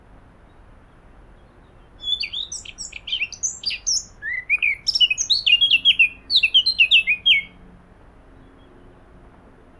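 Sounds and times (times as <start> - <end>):
Eurasian blackcap Sylvia atricapilla singing: 2.0 - 7.6.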